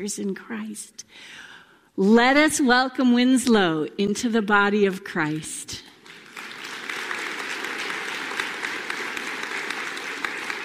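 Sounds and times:
speech: 0:00.0 - 0:05.9
audience clapping: 0:05.9 - 0:10.6.

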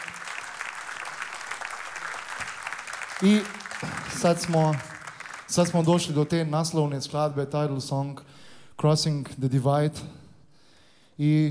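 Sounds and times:
audience applause at a live band performance: 0:00.0 - 0:06.4
speech: 0:03.2 - 0:04.9, 0:05.5 - 0:10.2, 0:11.2 - 0:11.5.

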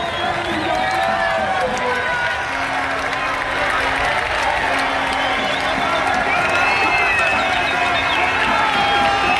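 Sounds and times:
whistles: 0:00.0 - 0:01.2, 0:04.7 - 0:09.3
crowd cheering a football goal: 0:00.0 - 0:09.3.

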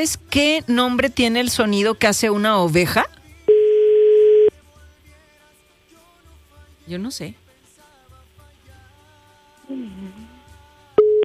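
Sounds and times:
speech: 0:00.0 - 0:03.1, 0:06.9 - 0:07.4
telephone busy tone: 0:03.5 - 0:04.5, 0:11.0 - 0:11.2.

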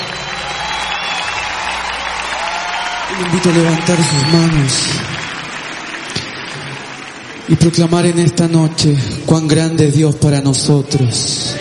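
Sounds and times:
audience applauding: 0:00.0 - 0:08.8
speech: 0:03.2 - 0:05.1, 0:07.5 - 0:11.5.

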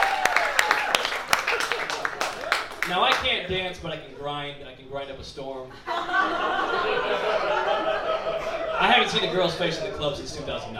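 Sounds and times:
scattered claps from a small audience: 0:00.0 - 0:03.4
speech: 0:02.9 - 0:08.1, 0:08.8 - 0:10.7
laughter: 0:05.7 - 0:10.5.

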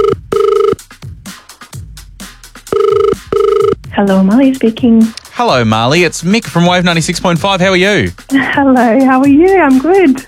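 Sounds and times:
telephone ringing on an outgoing call: 0:00.0 - 0:00.8, 0:02.7 - 0:03.8
speech: 0:04.0 - 0:10.2.

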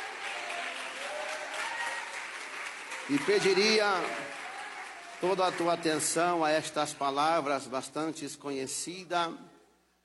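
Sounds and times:
audience clapping hands: 0:00.0 - 0:07.5
speech: 0:03.1 - 0:04.3, 0:05.2 - 0:09.5.

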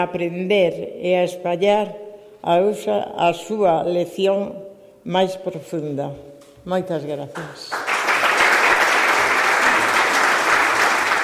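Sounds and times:
speech: 0:00.0 - 0:07.8
audience applause in a hall: 0:07.4 - 0:11.2.

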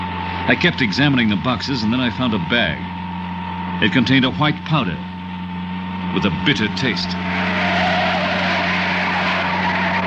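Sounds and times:
low engine hum: 0:00.0 - 0:10.0
speech: 0:00.5 - 0:03.0, 0:03.8 - 0:05.1, 0:06.1 - 0:07.5
truck tires skidding as it turns: 0:06.8 - 0:10.0.

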